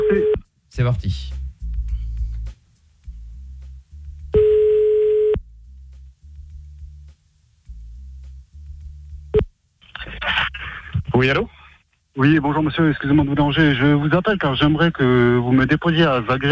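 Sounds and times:
ringback tone of an outgoing telephone call to Marseille: 0.0 - 0.4, 4.4 - 5.4
low telephone line hum: 0.0 - 0.5, 1.5 - 16.4
speech: 0.8 - 1.4, 11.2 - 11.6, 12.2 - 16.4.

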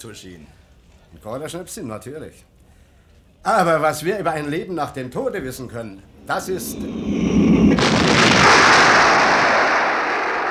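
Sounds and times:
speech: 0.0 - 2.5, 3.4 - 8.3
cannonball whistling through air: 6.1 - 10.4.

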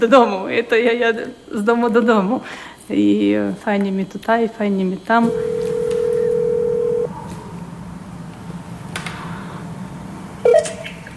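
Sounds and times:
speech: 0.0 - 5.7
telephone dial tone: 5.3 - 7.1.

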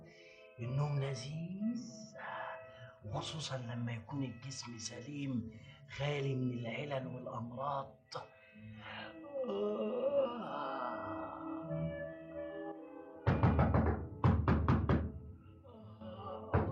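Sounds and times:
speech: 0.6 - 10.8
knocking on a door: 13.3 - 15.2.

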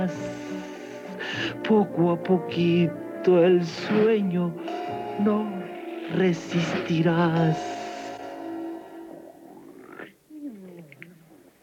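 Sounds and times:
speech: 0.0 - 0.5, 1.4 - 7.8
snoring: 3.9 - 11.2.

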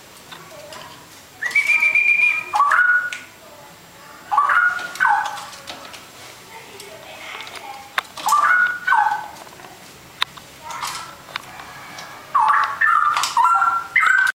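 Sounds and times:
Oriental magpie-robin singing: 1.4 - 3.3, 4.3 - 5.5, 8.2 - 9.3, 12.3 - 14.3.

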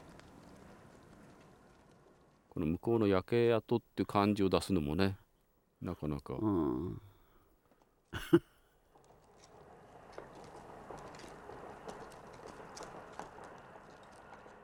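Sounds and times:
speech: 2.6 - 5.2, 5.8 - 7.1, 8.1 - 8.5
distant train passing: 9.4 - 14.6.

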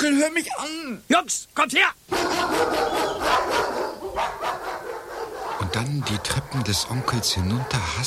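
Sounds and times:
speech: 0.2 - 4.4, 5.8 - 8.0
dogs barking and snarling: 2.1 - 8.0.

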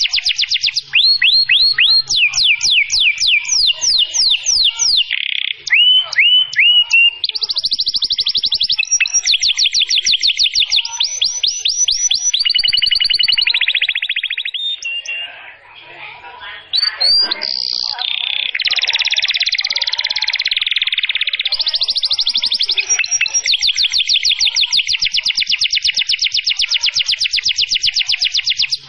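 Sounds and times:
canary singing: 0.0 - 28.8.

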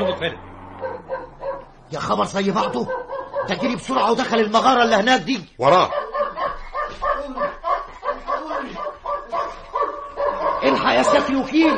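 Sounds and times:
dog barking: 0.0 - 1.8, 2.5 - 4.0, 5.8 - 11.7
speech: 0.1 - 6.0, 10.6 - 11.7.

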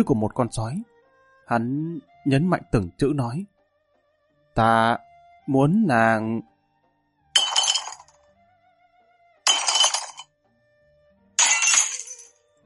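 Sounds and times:
speech: 0.0 - 0.9, 1.5 - 3.5, 4.6 - 6.5
ceramic teapots smashing on the ground: 7.4 - 8.1, 9.5 - 10.2, 11.4 - 12.3.

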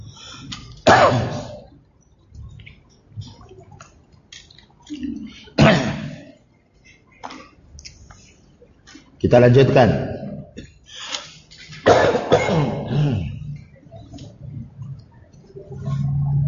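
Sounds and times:
coughing fit: 0.8 - 1.7, 5.6 - 6.4, 11.7 - 13.5
speech: 9.3 - 10.2.

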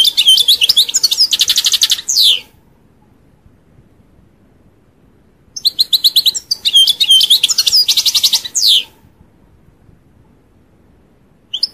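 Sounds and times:
European goldfinch chirping: 0.0 - 2.4, 5.6 - 8.9, 11.5 - 11.7.

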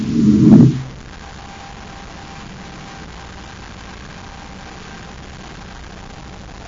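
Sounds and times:
spaceship Terra 5 landing on the moon: 0.0 - 0.9.

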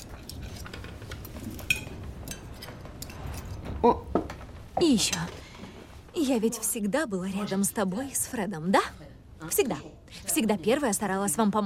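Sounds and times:
dishes and cutlery clinking as food is taken: 0.0 - 3.6
speech: 3.8 - 4.1, 4.8 - 5.4, 6.2 - 11.6.

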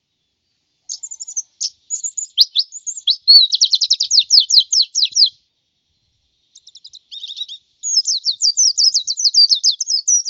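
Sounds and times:
white-eye twittering song: 0.9 - 5.4, 6.5 - 10.2.

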